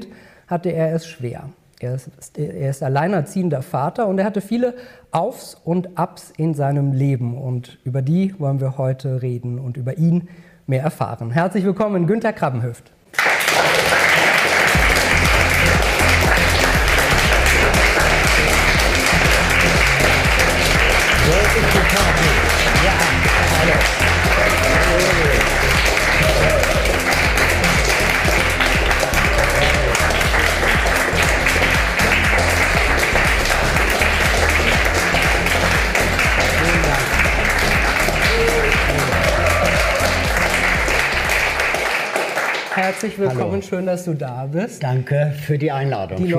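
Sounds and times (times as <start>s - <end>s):
speech: 0.0s - 14.0s, 43.0s - 46.3s
audience applause: 13.2s - 43.5s.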